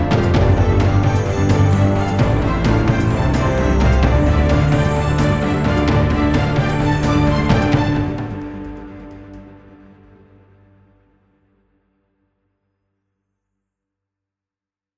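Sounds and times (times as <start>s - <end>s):
epic dynamic trailer logo music: 0.0s - 9.8s.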